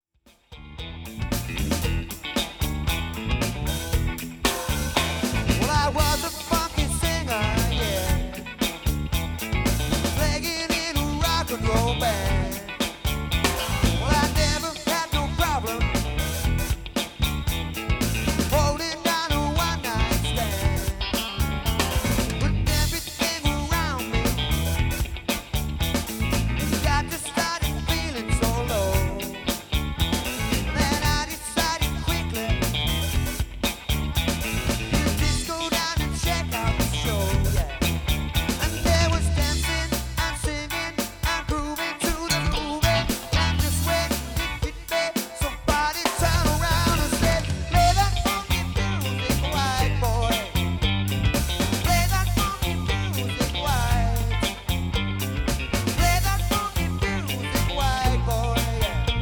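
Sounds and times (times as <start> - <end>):
funk music: 0.3 - 59.1.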